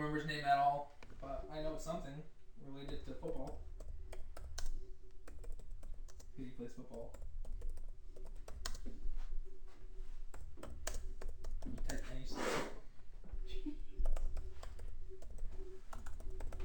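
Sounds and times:
speech: 0:00.0 - 0:03.7, 0:06.4 - 0:07.3, 0:11.6 - 0:12.7
typing on a computer keyboard: 0:02.8 - 0:08.9, 0:10.3 - 0:12.2, 0:13.9 - 0:16.6.

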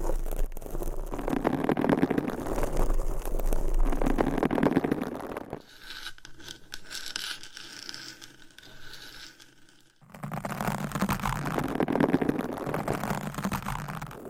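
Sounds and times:
nails scratching on microphone covers: 0:00.0 - 0:14.2.

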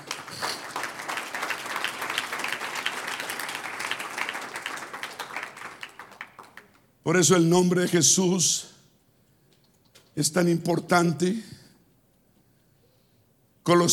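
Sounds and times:
audience applause: 0:00.0 - 0:06.8
speech: 0:07.1 - 0:08.7, 0:10.2 - 0:11.6, 0:13.7 - 0:13.9.

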